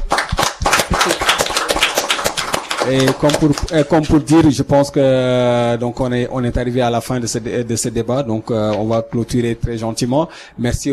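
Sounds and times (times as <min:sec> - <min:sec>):
audience applause: 0:00.0 - 0:04.3
speech: 0:02.9 - 0:10.9.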